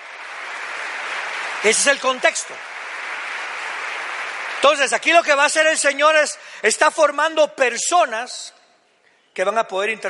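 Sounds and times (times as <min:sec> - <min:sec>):
loud applause: 0:00.0 - 0:06.3
speech: 0:01.6 - 0:02.7, 0:04.6 - 0:08.6, 0:09.4 - 0:10.0.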